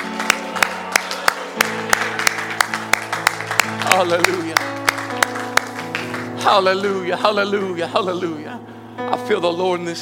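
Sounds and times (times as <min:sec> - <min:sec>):
audience clapping hands: 0:00.0 - 0:07.1
speech: 0:03.9 - 0:04.6, 0:06.4 - 0:08.6, 0:09.3 - 0:10.0.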